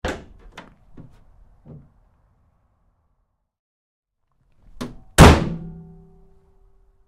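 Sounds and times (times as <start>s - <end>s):
GMC Savana truck second rear door opening and closing hard: 0.0s - 2.0s, 4.7s - 5.7s.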